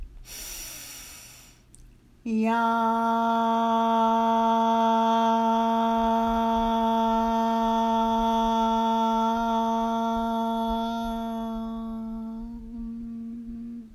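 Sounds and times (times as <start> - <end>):
deep breath in during a guided breathing exercise: 0.2 - 1.7
steady sustained tone: 2.3 - 13.9.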